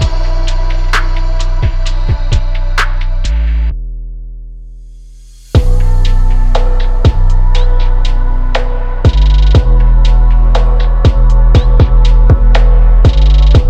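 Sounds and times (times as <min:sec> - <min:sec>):
cloud trap and late night beats: 0:00.0 - 0:03.7, 0:05.6 - 0:13.6.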